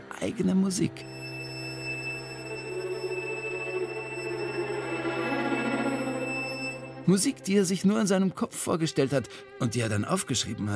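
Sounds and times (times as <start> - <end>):
speech: 0.2 - 1.3, 7.1 - 10.7
high-pitched whistle simulating tinnitus: 0.9 - 7.4.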